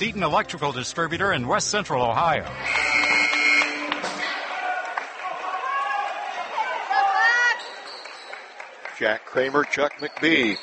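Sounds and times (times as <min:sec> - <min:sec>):
speech: 0:00.0 - 0:03.1, 0:09.0 - 0:10.6
crowd in a high school gym: 0:02.6 - 0:10.6.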